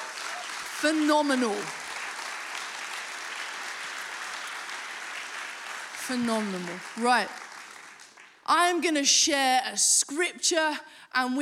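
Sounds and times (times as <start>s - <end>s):
audience applause: 0.0s - 8.4s
speech: 0.8s - 1.8s, 6.1s - 7.4s, 8.5s - 11.4s.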